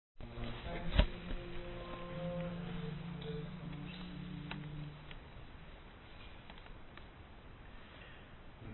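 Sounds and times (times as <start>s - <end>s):
bass: 0.2s - 5.7s.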